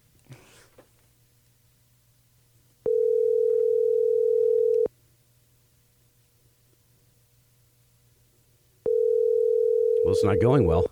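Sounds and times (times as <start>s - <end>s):
telephone ringing over the line: 2.8s - 4.9s, 8.8s - 10.8s
speech: 10.2s - 10.8s.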